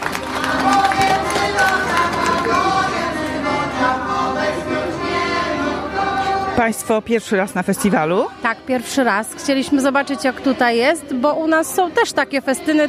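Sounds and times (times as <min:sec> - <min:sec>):
audience applause at festival: 0:00.0 - 0:03.3
murmur of crowd voices: 0:00.0 - 0:12.8
speech: 0:06.6 - 0:12.8.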